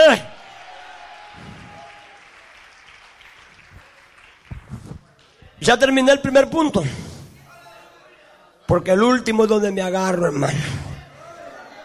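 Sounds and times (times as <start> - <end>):
audience applause: 0.4 - 5.4
speech: 5.6 - 7.1, 8.7 - 10.8.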